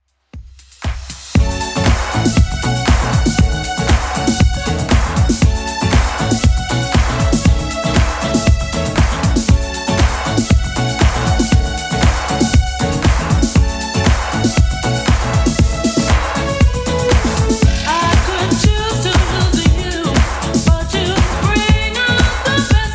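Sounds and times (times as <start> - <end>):
80s club mix at 118 bpm: 0.6 - 22.9.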